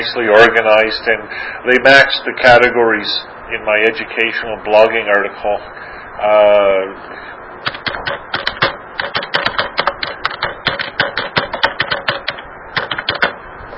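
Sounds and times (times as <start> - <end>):
speech: 0.0 - 8.2
computer keyboard typing: 7.6 - 13.4.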